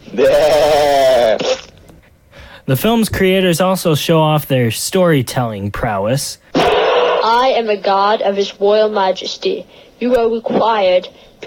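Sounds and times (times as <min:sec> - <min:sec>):
human voice imitating a sheep bleat for a LEGO film: 0:00.1 - 0:01.6
speech: 0:02.7 - 0:11.4.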